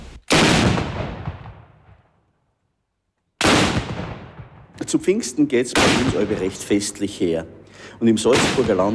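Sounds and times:
ceremonial Prangerstutzen rifle shots: 0:00.2 - 0:02.1, 0:03.4 - 0:07.0, 0:08.2 - 0:08.9
speech: 0:04.9 - 0:08.9.

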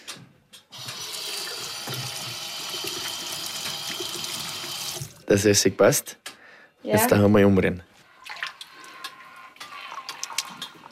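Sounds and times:
running tap water over hands being washed: 0:00.7 - 0:05.2, 0:08.2 - 0:10.9
speech: 0:05.3 - 0:06.3, 0:06.9 - 0:07.9.

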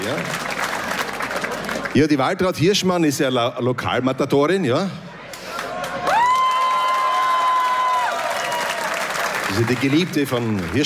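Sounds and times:
audience applause and cheering: 0:00.0 - 0:02.2, 0:05.3 - 0:10.8
speech: 0:02.0 - 0:05.0, 0:09.6 - 0:10.8.

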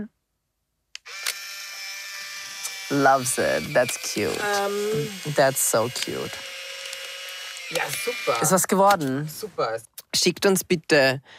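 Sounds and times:
camera shutter click: 0:01.1 - 0:01.5
speech: 0:02.9 - 0:06.6, 0:07.7 - 0:11.3.

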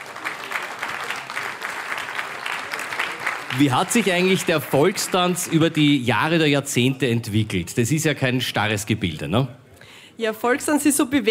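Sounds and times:
audience applause: 0:00.0 - 0:06.6
speech: 0:03.5 - 0:09.6, 0:10.2 - 0:11.2.

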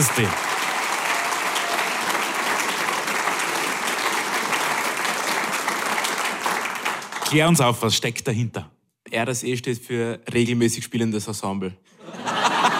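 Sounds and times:
speech: 0:00.0 - 0:00.4, 0:07.3 - 0:12.0
audience applause: 0:00.0 - 0:07.6
laughter: 0:12.0 - 0:12.7.

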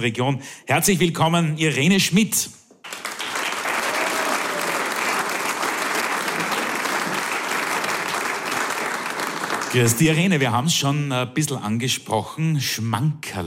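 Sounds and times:
speech: 0:00.0 - 0:03.1, 0:09.7 - 0:13.4
audience applause: 0:02.8 - 0:10.2.

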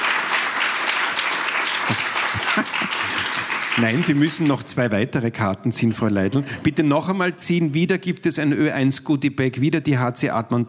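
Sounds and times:
audience applause: 0:00.0 - 0:04.7
laughter: 0:01.8 - 0:04.0, 0:06.0 - 0:07.1
speech: 0:03.8 - 0:10.6.

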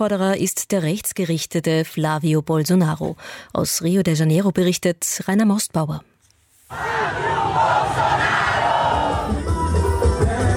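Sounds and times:
speech: 0:00.0 - 0:06.1, 0:06.7 - 0:08.3
large crowd cheering and shouting at an election rally: 0:06.7 - 0:10.4.

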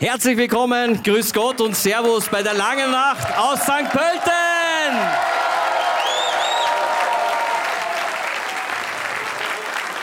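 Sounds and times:
speech: 0:00.0 - 0:05.5
large crowd applauding in a festival tent: 0:02.6 - 0:10.0
faint whistles: 0:06.0 - 0:06.7.

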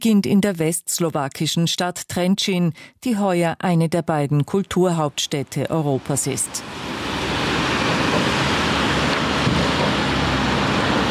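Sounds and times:
speech: 0:00.0 - 0:06.9
wind blowing on a river bridge: 0:05.8 - 0:11.0.

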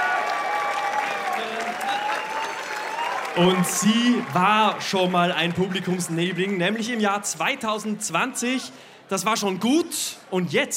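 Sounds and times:
audience applause: 0:00.0 - 0:08.2
speech: 0:03.4 - 0:10.7.

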